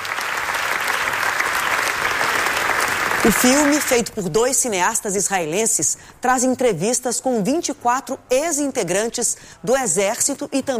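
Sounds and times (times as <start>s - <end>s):
audience applause at film premiere: 0.0s - 4.0s
speech: 3.2s - 10.7s.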